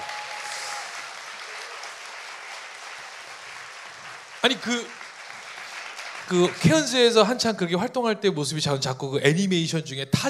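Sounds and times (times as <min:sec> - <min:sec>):
applause: 0:00.0 - 0:07.5
speech: 0:04.4 - 0:05.0, 0:06.3 - 0:10.2.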